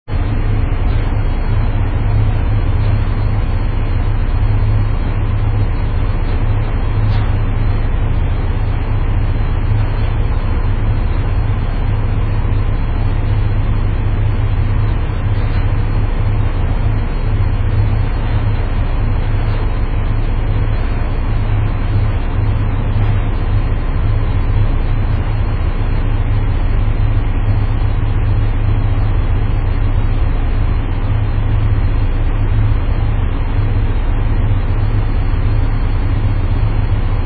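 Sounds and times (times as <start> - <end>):
steamboat: 0.1 - 37.2.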